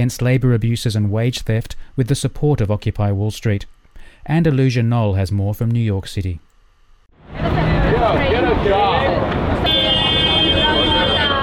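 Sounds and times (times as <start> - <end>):
speech: 0.0 - 6.5, 8.0 - 9.4
busy street-corner traffic in Midtown Manhattan: 7.2 - 11.4
horn-like tone: 9.6 - 11.4.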